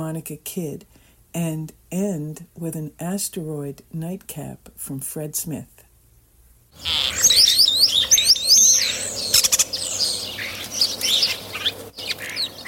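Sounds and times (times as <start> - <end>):
speech: 0.1 - 5.8, 6.8 - 8.0
European starling calling with whistles, chirps, clicks and rasping notes: 6.8 - 12.6.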